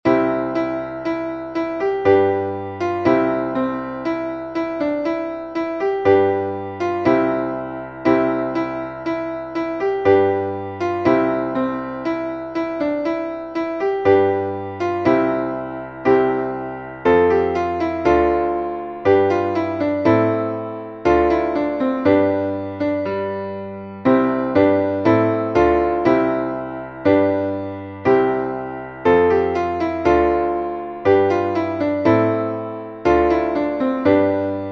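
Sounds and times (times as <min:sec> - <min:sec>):
piano Christmas carol: 0:00.0 - 0:34.7.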